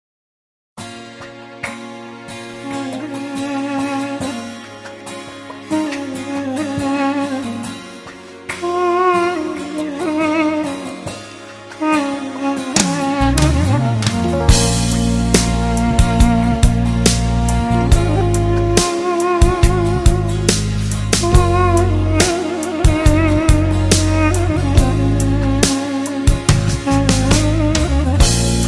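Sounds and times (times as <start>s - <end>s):
duduk: 2.6s - 5.0s, 5.6s - 28.6s.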